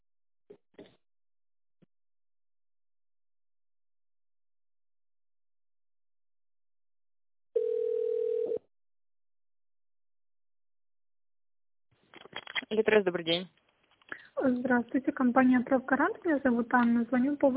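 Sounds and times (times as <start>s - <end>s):
telephone ringback tone as a call is connected: 7.6s - 8.7s
speech: 12.7s - 13.6s, 14.4s - 17.5s.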